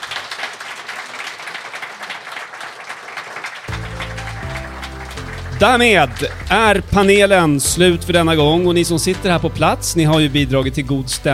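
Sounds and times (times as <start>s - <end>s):
audience applause: 0.0s - 7.7s
speech: 5.6s - 11.3s.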